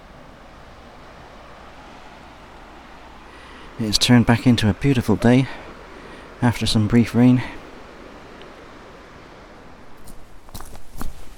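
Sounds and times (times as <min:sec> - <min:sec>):
speech: 0:03.8 - 0:05.6, 0:06.4 - 0:07.6
footsteps crunching along a woodland path: 0:09.9 - 0:11.3.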